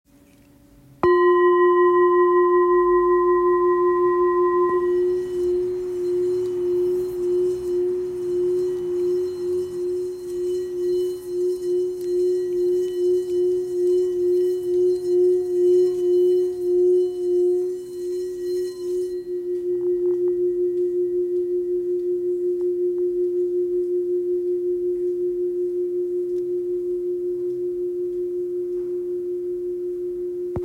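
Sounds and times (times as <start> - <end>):
old 655 g Tibetan singing bowl: 1.0 - 30.6.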